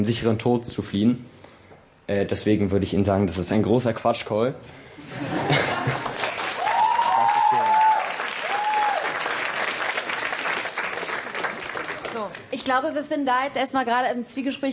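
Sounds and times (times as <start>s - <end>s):
speech: 0.0s - 1.4s, 2.1s - 6.0s, 12.7s - 14.7s
laughter: 5.0s - 6.4s
audience applause: 5.5s - 12.5s.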